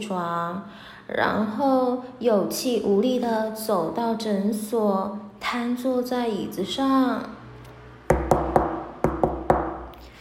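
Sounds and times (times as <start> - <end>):
speech: 0.0 - 7.4
knocking on a door: 8.1 - 9.9.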